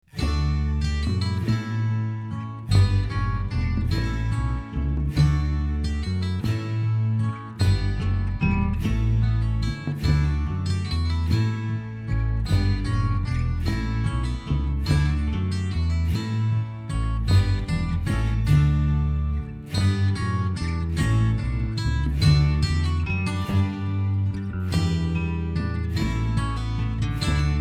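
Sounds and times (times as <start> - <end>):
instrumental music: 0.0 - 27.5.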